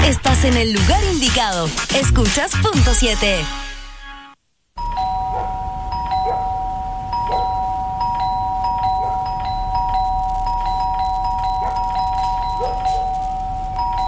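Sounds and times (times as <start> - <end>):
speech: 0.1 - 3.6
doorbell ringing: 4.8 - 14.0.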